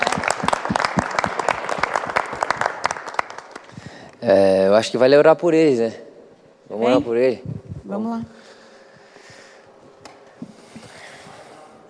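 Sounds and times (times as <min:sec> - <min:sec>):
audience applause: 0:00.0 - 0:04.1
speech: 0:04.2 - 0:06.0, 0:06.7 - 0:08.4.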